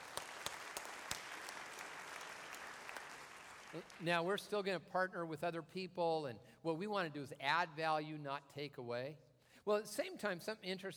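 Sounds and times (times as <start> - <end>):
audience applause: 0.0 - 4.0
speech: 3.7 - 10.9.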